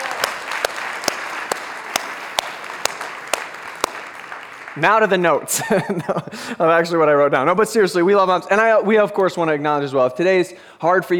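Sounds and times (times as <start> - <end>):
audience clapping: 0.0 - 6.0
speech: 4.8 - 11.1
laughter: 5.5 - 6.6.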